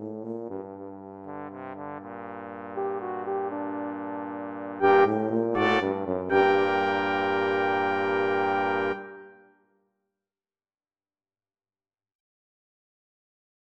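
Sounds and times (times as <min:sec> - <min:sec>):
baroque music: 0:01.6 - 0:09.5.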